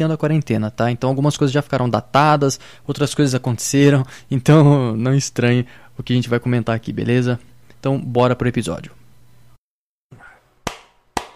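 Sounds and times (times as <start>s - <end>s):
speech: 0.0s - 9.0s
loud hand clap for audio sync: 10.6s - 11.3s.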